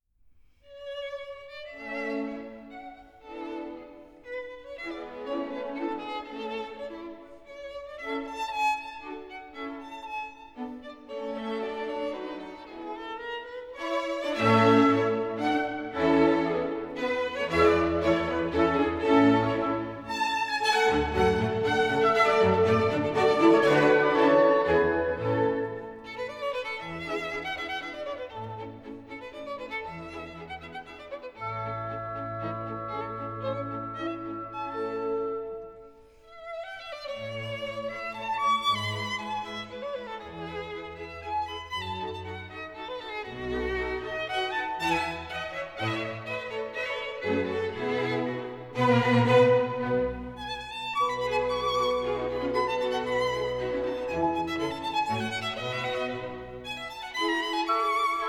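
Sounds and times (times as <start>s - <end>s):
violin concerto rondeau in minuet tempo: 0.7s - 58.2s.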